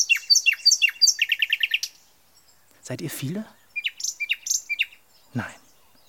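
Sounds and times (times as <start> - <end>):
bird chirping and trilling: 0.0 - 6.0
speech: 2.9 - 3.6, 5.3 - 5.6.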